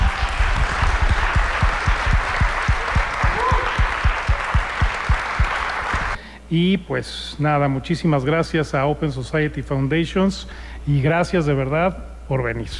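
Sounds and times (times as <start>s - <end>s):
audience applause: 0.0s - 6.2s
speech: 6.5s - 12.7s.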